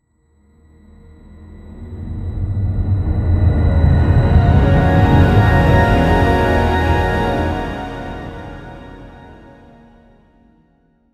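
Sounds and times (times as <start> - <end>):
slow tense and dramatic music: 2.9 - 9.7.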